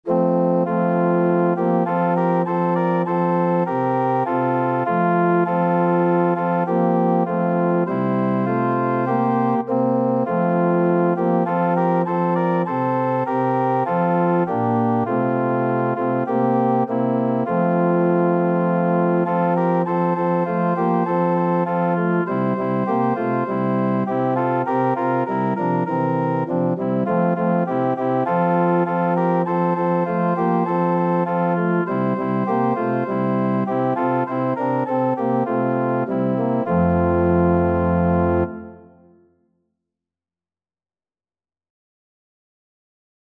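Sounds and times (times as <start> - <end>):
organ: 0.0 - 39.2.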